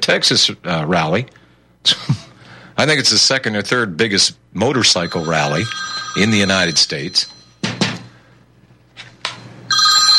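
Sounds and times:
speech: 0:00.0 - 0:02.2, 0:02.8 - 0:07.3
phone ringer ringing: 0:04.8 - 0:07.7, 0:09.7 - 0:10.1.

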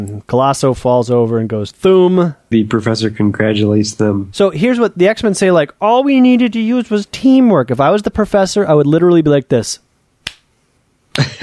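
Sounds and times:
speech: 0:00.0 - 0:09.8, 0:11.2 - 0:11.4
slow clap: 0:10.2 - 0:10.5.

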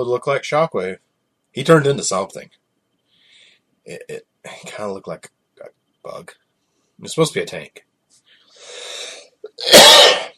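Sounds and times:
speech: 0:00.0 - 0:02.6, 0:03.9 - 0:06.4, 0:07.0 - 0:07.9, 0:09.5 - 0:10.3
loud sneeze: 0:09.6 - 0:10.3.

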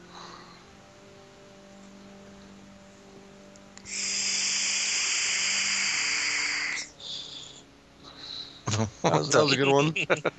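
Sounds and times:
vape exhale hiss: 0:03.8 - 0:08.6
laughter: 0:08.7 - 0:10.3
speech: 0:08.8 - 0:10.3.

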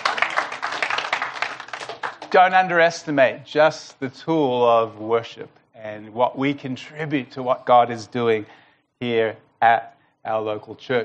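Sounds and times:
church audience clapping: 0:00.0 - 0:02.7
speech: 0:02.3 - 0:11.0.

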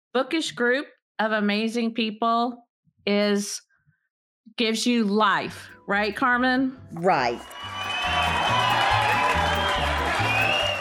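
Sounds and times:
speech: 0:00.2 - 0:03.7, 0:04.5 - 0:07.8
crowd of fans cheering: 0:07.4 - 0:10.7.

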